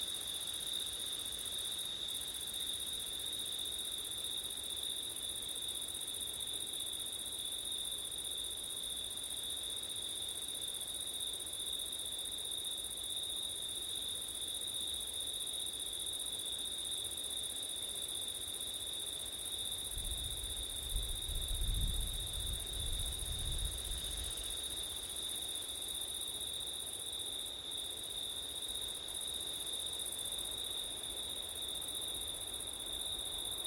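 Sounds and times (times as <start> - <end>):
light wind: 0.0 - 33.6
shrill cricket chorus: 18.6 - 33.6.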